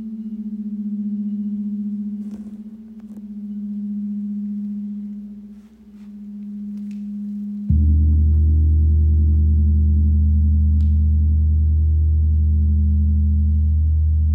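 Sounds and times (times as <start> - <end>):
crystal bowl ringing: 0.0 - 7.7
deep fuller drone: 0.0 - 14.3.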